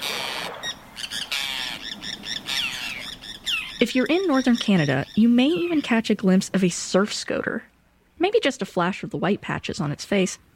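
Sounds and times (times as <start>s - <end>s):
Forster's tern harsh raspy squawking calls: 0.0s - 6.1s
speech: 3.8s - 10.5s.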